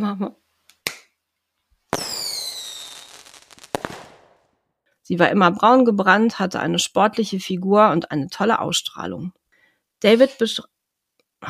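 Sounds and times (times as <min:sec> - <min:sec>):
speech: 0:00.0 - 0:00.4, 0:05.1 - 0:09.4, 0:10.0 - 0:10.8
hand clap: 0:00.8 - 0:01.1.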